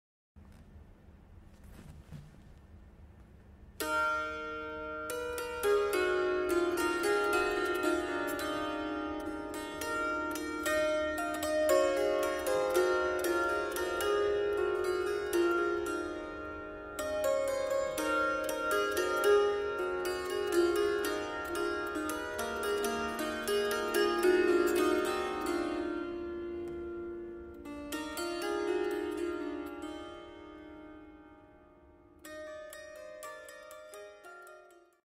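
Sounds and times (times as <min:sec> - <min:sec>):
psalterion playing: 0:01.5 - 0:35.0.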